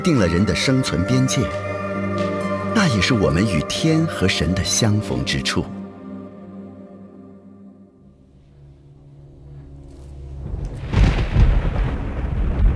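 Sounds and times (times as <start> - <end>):
speech: 0.0 - 2.3, 3.0 - 5.8
summer thunder rumbling: 10.4 - 12.7.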